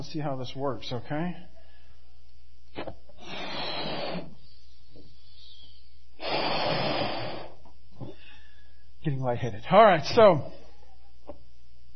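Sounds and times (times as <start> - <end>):
speech: 0.0 - 1.5, 9.2 - 10.6
blowing up a balloon: 2.7 - 4.8, 5.4 - 7.7
faint intake of breath: 3.2 - 8.9.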